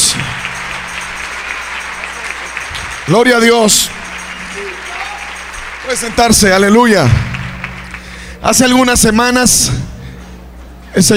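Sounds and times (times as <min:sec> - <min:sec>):
audience applauding: 0:00.0 - 0:08.9
speech: 0:03.1 - 0:04.0, 0:05.8 - 0:07.3, 0:08.4 - 0:09.9, 0:10.9 - 0:11.1.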